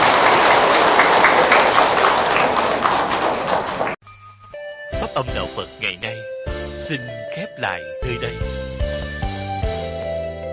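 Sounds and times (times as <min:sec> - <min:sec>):
crowd applauding: 0:00.0 - 0:04.0
speech: 0:05.2 - 0:08.7.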